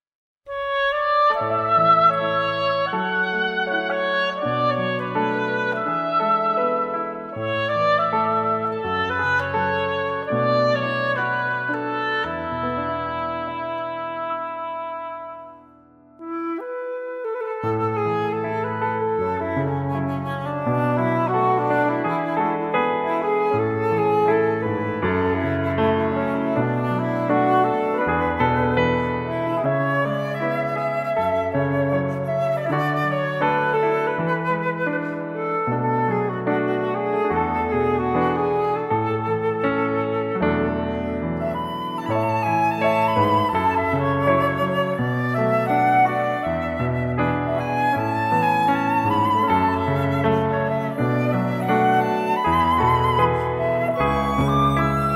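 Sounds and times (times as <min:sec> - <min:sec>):
flute playing: 0:00.5 - 0:55.1.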